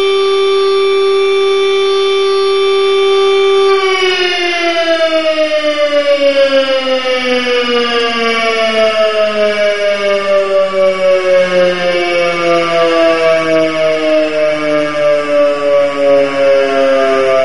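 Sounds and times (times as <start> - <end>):
civil defence siren all-clear signal: 0.0 - 17.4.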